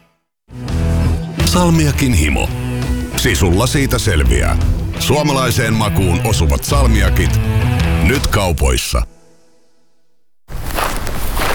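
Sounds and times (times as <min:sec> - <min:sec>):
speech: 0:01.6 - 0:02.6, 0:03.2 - 0:09.1
footsteps walking on forest ground: 0:10.5 - 0:11.5.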